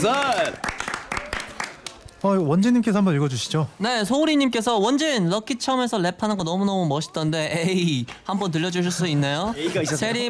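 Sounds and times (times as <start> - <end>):
speech: 0.0 - 0.7, 2.2 - 10.2
audience applause: 0.0 - 2.0.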